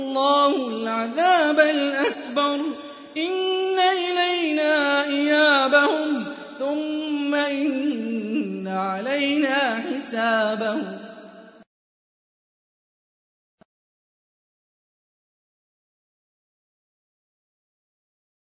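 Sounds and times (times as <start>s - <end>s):
Quran recitation: 0.0s - 11.7s.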